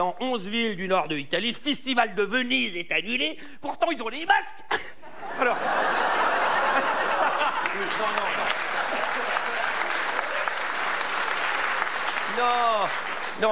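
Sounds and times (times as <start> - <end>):
speech: 0.0 - 6.2, 7.8 - 8.6, 12.4 - 13.5
laughter: 4.7 - 11.1
audience applause: 6.2 - 13.5.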